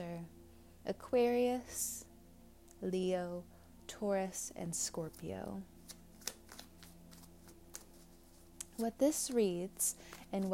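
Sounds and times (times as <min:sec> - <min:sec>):
speech: 0:00.0 - 0:02.1, 0:02.8 - 0:05.7, 0:08.8 - 0:10.5
tarot card being drawn from the deck: 0:05.8 - 0:09.4.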